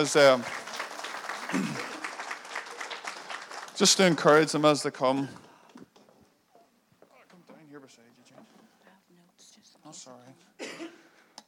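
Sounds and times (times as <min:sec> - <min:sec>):
speech: 0:00.0 - 0:00.7, 0:01.5 - 0:01.9, 0:03.8 - 0:05.4
audience applause: 0:00.0 - 0:05.2.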